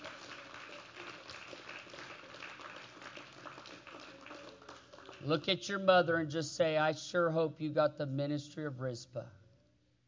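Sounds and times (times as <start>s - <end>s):
audience clapping hands: 0.0s - 5.8s
speech: 5.2s - 9.4s.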